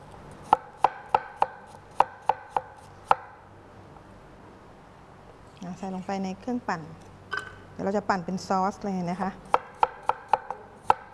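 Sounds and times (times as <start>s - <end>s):
knife chopping an apple into small pieces on a board: 0.4s - 3.3s, 9.5s - 11.1s
speech: 5.8s - 7.1s, 7.8s - 9.6s.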